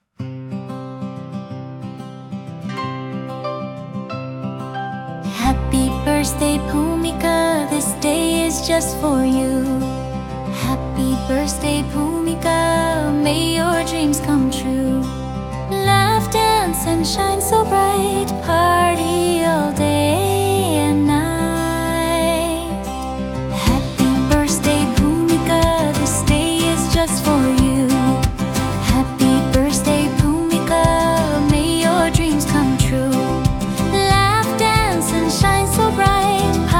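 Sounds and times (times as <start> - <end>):
birthday song: 5.3 - 36.7.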